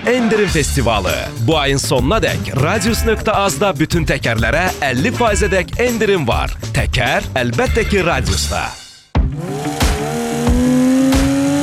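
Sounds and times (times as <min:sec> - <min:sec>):
speech: 0:00.1 - 0:08.8
car engine running after Bardal Full Metal additive without oil: 0:09.2 - 0:11.6.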